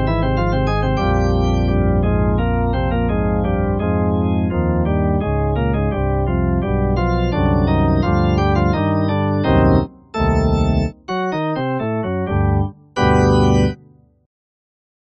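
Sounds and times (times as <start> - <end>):
Oberheim OB-3 organ: 0.0 - 13.8.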